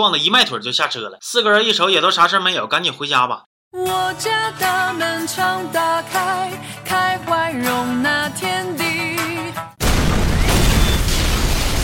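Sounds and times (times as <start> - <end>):
speech: 0.0 - 8.9
house exploding in a film scene: 9.8 - 11.8.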